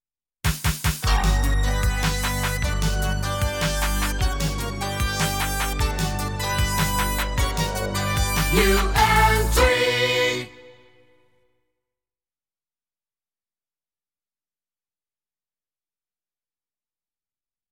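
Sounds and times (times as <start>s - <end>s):
chart new entry jingle: 1.1s - 11.0s.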